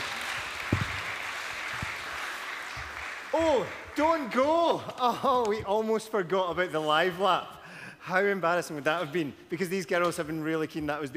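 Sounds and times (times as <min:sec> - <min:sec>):
audience applause: 0:00.0 - 0:04.4
speech: 0:03.4 - 0:11.1.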